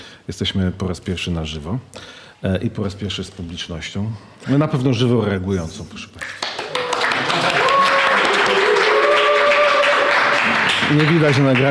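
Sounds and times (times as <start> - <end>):
speech: 0.3 - 6.4, 10.9 - 11.7
audience applause: 6.4 - 11.7.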